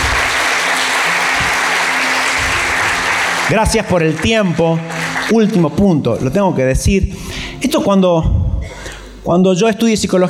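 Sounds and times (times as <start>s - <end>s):
audience applause: 0.0s - 5.7s
speech: 3.5s - 8.4s, 9.2s - 10.2s.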